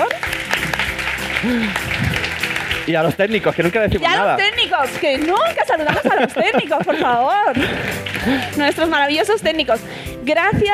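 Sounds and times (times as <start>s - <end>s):
audience applauding: 0.0s - 9.2s
speech: 1.4s - 10.7s
laughter: 5.4s - 8.9s.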